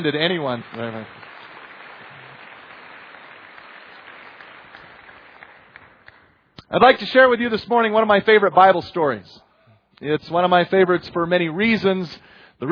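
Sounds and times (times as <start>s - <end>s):
speech: 0.0s - 1.2s, 6.7s - 9.4s, 10.0s - 12.7s
audience applause: 0.0s - 6.3s.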